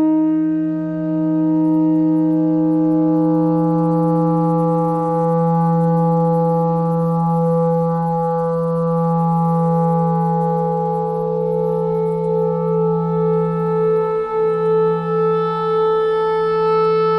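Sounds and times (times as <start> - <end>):
noise: 0.0 - 17.1
clarinet notes: 11.4 - 17.1.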